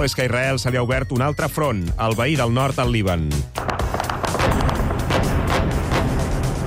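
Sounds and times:
speech: 0.0 - 4.0
heavy booms of overnight bombardment on the Israel–Lebanon front: 3.6 - 6.6.

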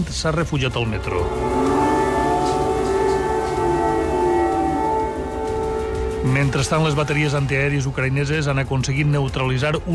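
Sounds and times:
speech: 0.0 - 1.7, 6.2 - 9.9
air raid alarms: 0.7 - 7.6.

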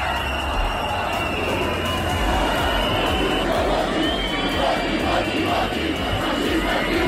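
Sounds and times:
long shrill whistles: 0.0 - 4.8
large crowd shouting and jeering in protest: 0.0 - 7.0.

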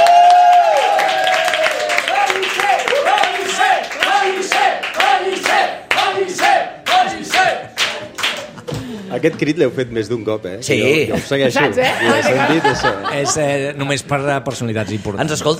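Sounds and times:
loud audience applause: 0.0 - 8.8
laughter: 8.3 - 9.2, 10.9 - 13.9
speech: 9.2 - 15.5.

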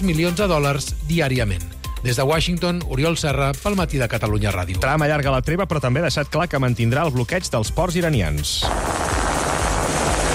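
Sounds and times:
speech: 0.0 - 9.1
US military helicopters in the Strait of Hormuz: 8.6 - 10.3.

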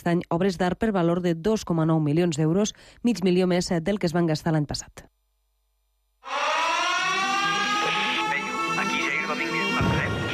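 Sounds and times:
speech: 0.0 - 5.2
radio comedy show theme tune: 6.2 - 10.3.

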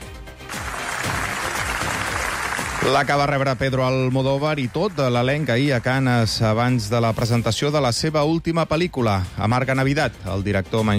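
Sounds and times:
large crowd ovation at film festival: 0.5 - 6.4
speech: 2.8 - 10.9.

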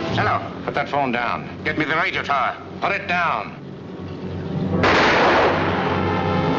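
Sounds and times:
speech: 0.2 - 3.6
gunshot: 4.8 - 6.4.

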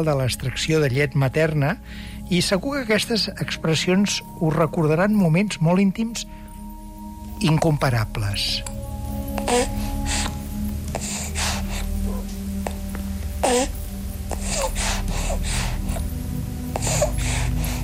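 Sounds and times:
speech: 0.0 - 6.4, 7.4 - 8.8, 9.5 - 10.3
baby brief wavering vocal sounds: 9.3 - 16.1
breastfeeding baby suckling: 9.3 - 17.8.

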